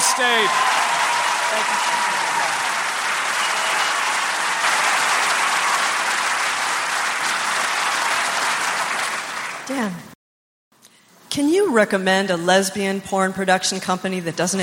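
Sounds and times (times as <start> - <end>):
audience applause for State Senator Ed Murray: 0.0 - 9.8
speech: 0.2 - 0.8, 1.5 - 2.7, 9.7 - 10.0, 11.7 - 14.6.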